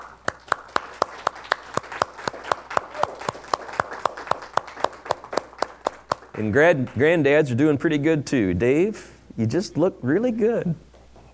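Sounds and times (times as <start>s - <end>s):
children clapping hands: 0.0s - 7.0s
speech: 6.4s - 10.9s.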